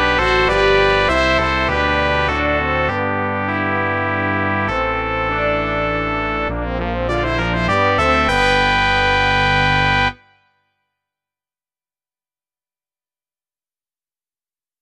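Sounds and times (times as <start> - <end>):
brass quintet: 0.0 - 10.4.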